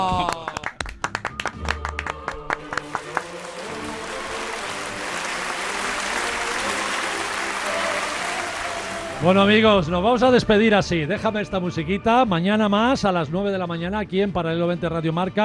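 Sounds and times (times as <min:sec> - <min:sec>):
applause and clapping: 0:00.0 - 0:09.4
speech: 0:09.2 - 0:15.4.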